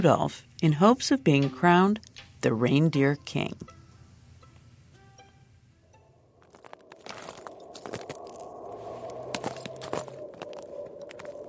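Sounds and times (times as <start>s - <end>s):
speech: 0.0s - 3.8s
low hiss: 1.3s - 6.4s
footsteps crunching on frozen lake ice: 6.4s - 11.4s.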